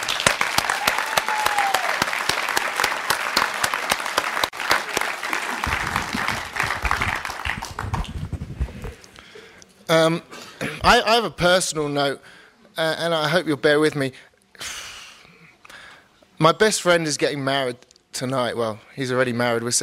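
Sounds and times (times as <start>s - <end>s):
audience applauding: 0.0s - 8.4s
speech: 9.9s - 14.7s, 16.4s - 19.8s.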